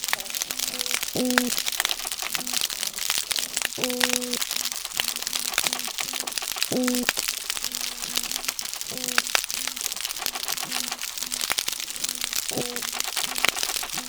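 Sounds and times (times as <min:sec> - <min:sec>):
Florida outdoor soundscape: 0:00.0 - 0:14.0.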